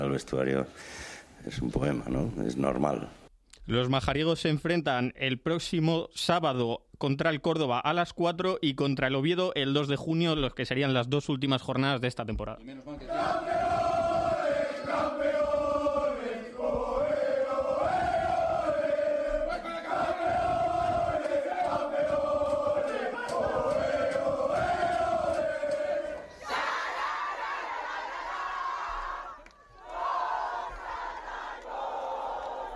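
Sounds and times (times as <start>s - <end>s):
speech: 0.1s - 13.6s
Fuenlabrada and Tacón football team championship shouts: 13.0s - 32.7s.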